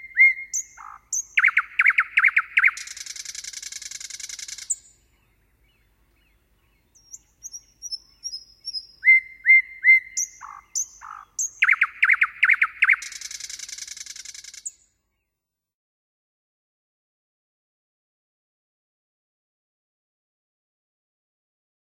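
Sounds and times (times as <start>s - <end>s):
common nightingale singing varied phrases: 0.0s - 15.3s.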